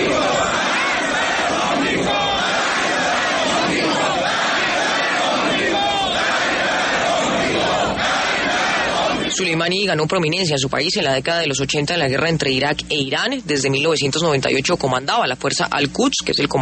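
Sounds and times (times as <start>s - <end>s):
street crowd in Tehran chanting: 0.0s - 9.4s
speech: 9.4s - 16.6s.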